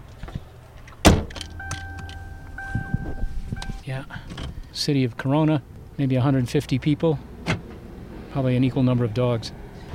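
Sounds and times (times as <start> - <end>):
rustling and shuffling movement: 0.1 - 4.7
car door thumping shut: 1.0 - 3.6
steady two-tone electronic chime: 1.4 - 3.9
speech: 3.9 - 7.3, 8.3 - 9.6.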